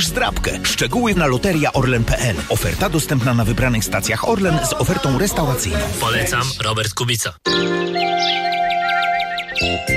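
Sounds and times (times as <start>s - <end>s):
speech: 0.0s - 8.5s
sparrows chirping in early morning: 7.5s - 9.9s.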